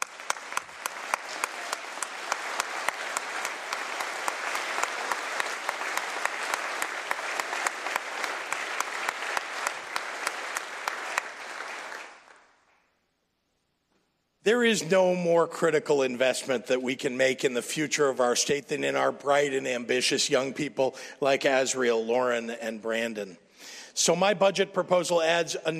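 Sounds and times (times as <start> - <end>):
crowd applauding: 0.0 - 12.8
speech: 14.5 - 25.7.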